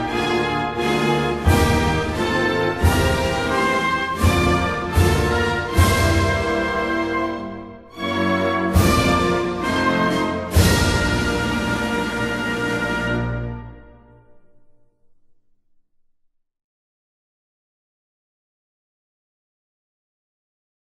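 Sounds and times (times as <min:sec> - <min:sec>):
anthem music: 0:00.0 - 0:15.3.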